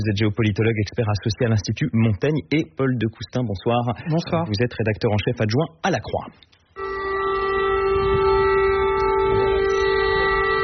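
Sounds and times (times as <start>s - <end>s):
speech: 0.0s - 6.6s
air raid siren wailing in Kyiv: 6.8s - 10.6s.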